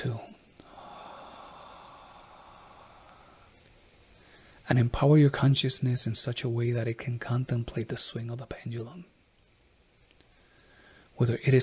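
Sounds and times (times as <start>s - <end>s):
speech: 0.0s - 0.3s, 4.7s - 9.1s, 11.2s - 11.6s
deep breath in during a guided breathing exercise: 0.6s - 3.6s, 4.2s - 4.6s, 10.3s - 11.2s.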